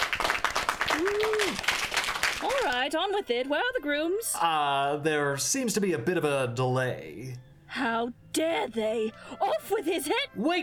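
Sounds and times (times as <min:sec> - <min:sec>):
crowd applauding: 0:00.0 - 0:02.9
speech: 0:01.0 - 0:01.8, 0:02.4 - 0:10.6.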